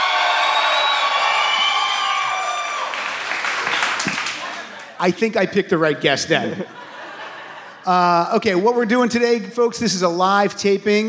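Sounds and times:
crowd cheering and clapping: 0.0 - 5.1
shrill whoops and high whistles: 0.2 - 2.6
speech: 5.0 - 6.8, 7.8 - 11.0
laughter: 6.2 - 8.4.

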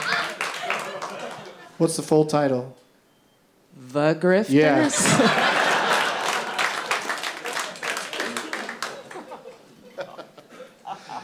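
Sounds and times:
audience clapping: 0.0 - 1.7, 4.8 - 9.7
speech: 1.8 - 2.8, 3.8 - 5.6
people chuckling: 4.8 - 11.2.

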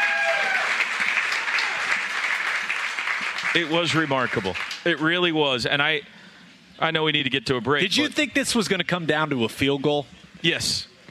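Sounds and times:
audience applause: 0.0 - 5.1
speech: 3.6 - 6.2, 6.8 - 10.9.

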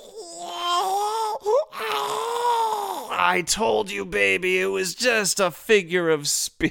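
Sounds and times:
baby crying in a crib: 0.0 - 3.3
speech: 3.3 - 6.6.

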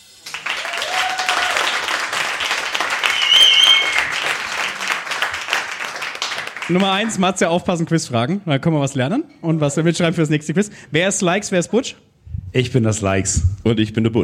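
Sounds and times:
audience applause: 0.2 - 7.2
speech: 6.7 - 14.2.

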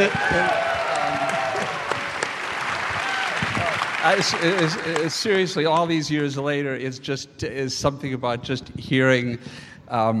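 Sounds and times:
speech: 0.0 - 0.6, 4.0 - 10.1
crowd applauding: 0.0 - 5.9.

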